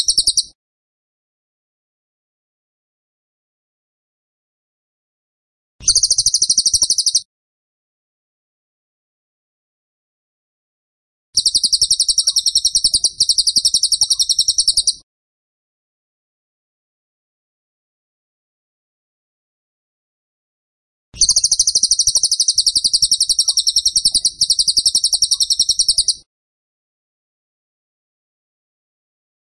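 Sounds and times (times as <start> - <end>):
Tembakan bird pulsed trilling: 0.0 - 0.6, 5.8 - 7.3, 11.4 - 15.0, 21.2 - 26.3.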